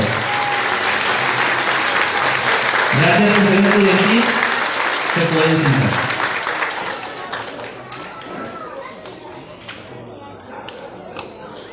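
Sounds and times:
students applauding loudly: 0.0 - 8.1
speech: 5.2 - 6.1.

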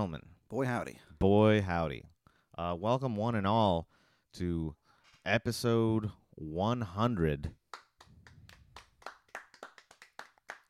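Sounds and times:
speech: 0.0 - 7.6
tepid round of applause: 7.7 - 10.6.

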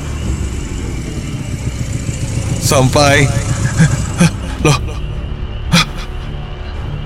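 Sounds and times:
motorcycle engine running with a steady low rumble: 0.0 - 5.1
speech: 2.6 - 5.0
laughter: 2.6 - 5.1, 5.7 - 6.3.

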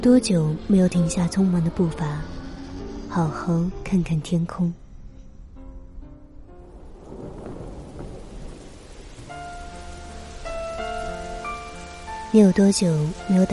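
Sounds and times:
speech: 0.0 - 2.4, 3.1 - 4.8, 12.3 - 13.5
rain falling on leaves: 6.8 - 13.5.

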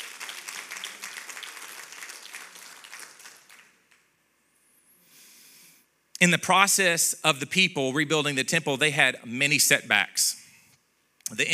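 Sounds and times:
audience hand clapping: 0.0 - 4.1
speech: 6.2 - 10.4, 11.3 - 11.5.

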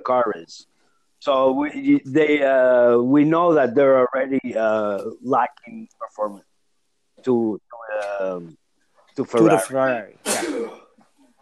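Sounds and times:
speech: 0.0 - 6.5, 7.2 - 8.6, 9.2 - 10.7
sneeze: 9.5 - 10.9.

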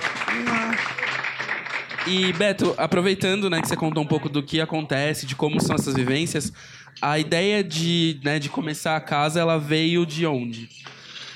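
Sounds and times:
audience applause: 0.0 - 2.8
speech: 2.0 - 11.0.

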